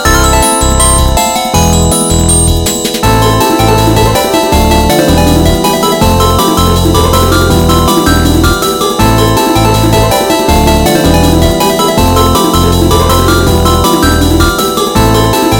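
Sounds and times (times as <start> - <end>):
8-bit electronic sound: 0.1 - 15.5.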